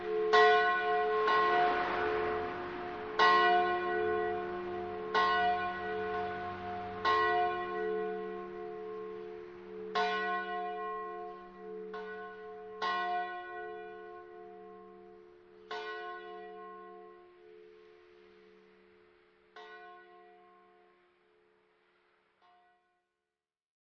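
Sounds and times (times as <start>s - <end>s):
bells ringing: 0.0s - 18.8s.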